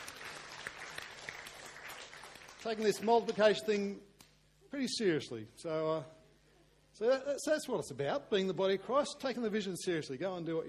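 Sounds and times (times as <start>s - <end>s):
audience clapping: 0.0s - 3.6s
speech: 2.6s - 4.1s, 4.7s - 6.2s, 7.0s - 10.6s.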